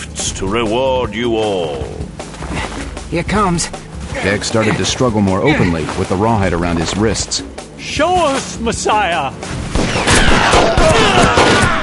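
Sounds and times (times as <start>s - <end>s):
speech: 0.2s - 11.6s
volley of gunfire in a dramatized scene: 9.7s - 11.8s.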